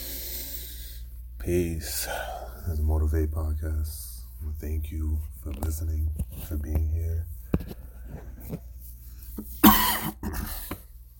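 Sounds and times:
speech: 1.5s - 7.4s, 8.1s - 8.7s
person coughing: 9.6s - 10.8s.

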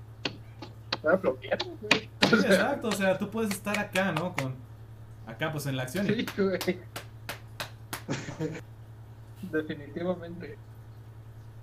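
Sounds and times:
speech: 1.0s - 4.7s, 5.3s - 7.0s, 8.1s - 8.7s, 9.4s - 10.7s
one-handed clap: 1.9s - 4.6s, 5.9s - 8.2s
laughter: 6.0s - 6.9s, 8.0s - 8.6s.

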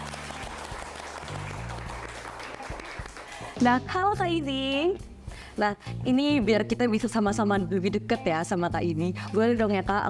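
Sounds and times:
lively applause welcoming a guest: 0.0s - 3.6s
speech: 3.6s - 10.0s.

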